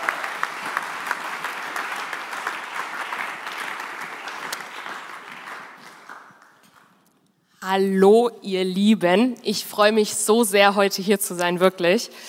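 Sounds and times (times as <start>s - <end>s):
audience applause: 0.0s - 7.0s
speech: 7.7s - 12.2s.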